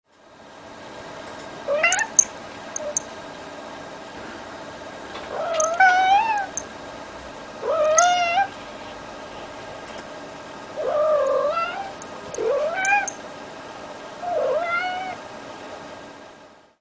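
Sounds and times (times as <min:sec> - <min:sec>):
cat meowing: 0:01.7 - 0:02.2, 0:05.3 - 0:06.6, 0:07.6 - 0:08.5, 0:10.8 - 0:13.2, 0:14.2 - 0:15.2.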